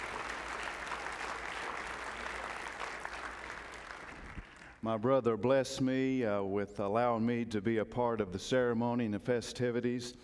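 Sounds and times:
audience applause: 0.0 - 4.8
speech: 4.8 - 10.2.

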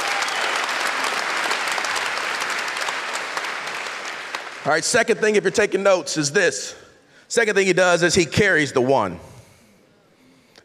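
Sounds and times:
audience applauding: 0.0 - 4.8
speech: 4.7 - 9.3.

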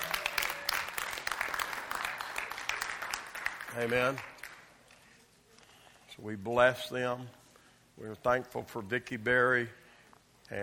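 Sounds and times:
audience hand clapping: 0.0 - 4.8
speech: 3.7 - 4.4, 6.2 - 7.4, 8.0 - 9.8, 10.5 - 10.6.

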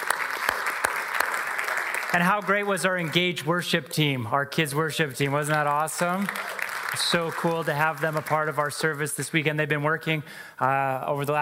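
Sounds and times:
audience applause: 0.0 - 3.4, 5.4 - 9.1
speech: 2.1 - 11.3.

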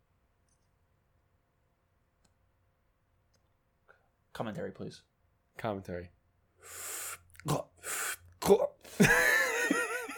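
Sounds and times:
speech: 4.4 - 7.7, 8.5 - 9.3
breathy hissing exhales of cigar smoke: 6.6 - 8.2.

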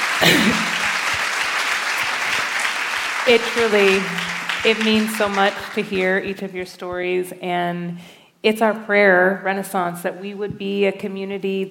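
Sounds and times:
audience clapping: 0.0 - 6.7
speech: 0.2 - 0.8, 3.3 - 11.6.

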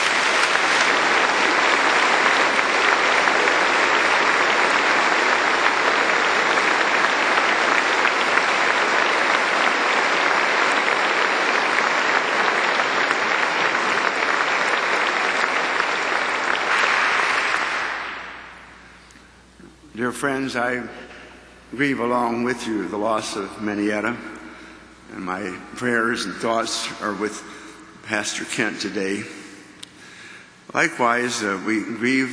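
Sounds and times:
applause welcoming Senator Richard Lugar: 0.0 - 19.0
speech: 20.2 - 21.0, 21.7 - 24.3, 25.1 - 29.4, 30.7 - 32.3.

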